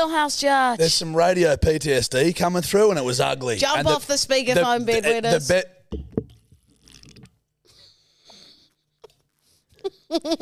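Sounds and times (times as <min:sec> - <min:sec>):
speech: 0:00.0 - 0:06.1, 0:10.1 - 0:10.4
person sipping a drink: 0:06.3 - 0:07.5.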